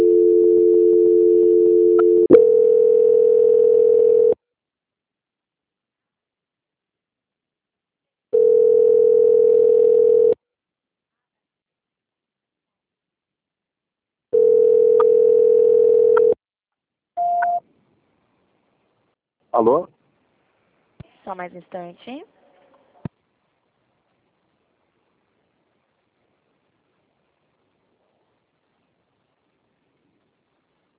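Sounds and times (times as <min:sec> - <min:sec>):
low-pitched telephone line tones during call transfer: 0:00.0 - 0:04.4, 0:08.3 - 0:10.4, 0:14.3 - 0:16.4
speech: 0:19.6 - 0:20.0, 0:21.3 - 0:22.4.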